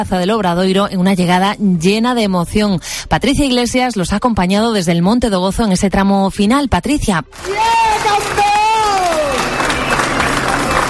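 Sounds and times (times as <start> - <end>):
speech: 0.0 - 8.5
crowd clapping and cheering arriving pilgrims: 7.3 - 10.8.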